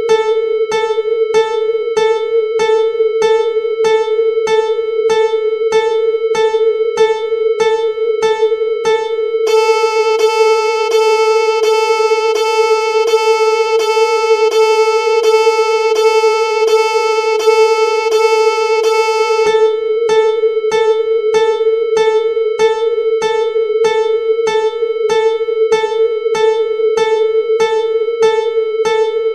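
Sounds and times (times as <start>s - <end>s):
annoying Csound synthesized instrument sounds: 0.0s - 29.3s.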